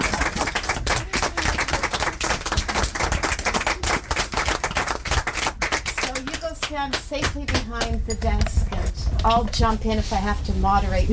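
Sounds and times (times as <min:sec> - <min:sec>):
audience applause: 0:00.0 - 0:06.7
speech: 0:06.7 - 0:08.6, 0:09.2 - 0:11.1.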